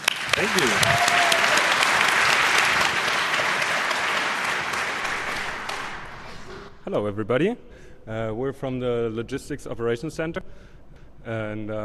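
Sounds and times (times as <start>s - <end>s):
audience applause: 0.0s - 6.5s
speech: 6.9s - 11.8s.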